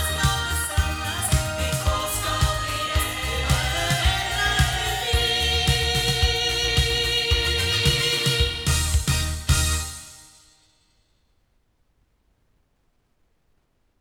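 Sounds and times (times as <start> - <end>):
loudspeakers: 0.0 - 9.9.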